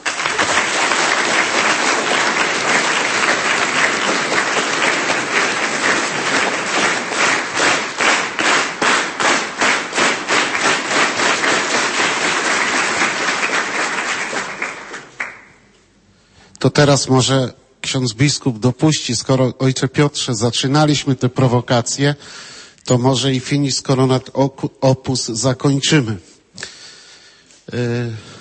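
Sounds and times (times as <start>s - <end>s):
audience applause: 0.0s - 15.5s
crowd rhythmic unison clapping: 0.0s - 15.8s
speech: 16.8s - 26.7s, 27.7s - 28.3s.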